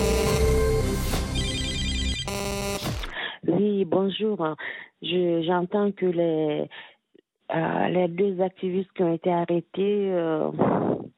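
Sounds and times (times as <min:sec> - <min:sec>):
answering machine beep: 0:00.0 - 0:03.2
speech: 0:03.8 - 0:06.9, 0:07.5 - 0:11.1.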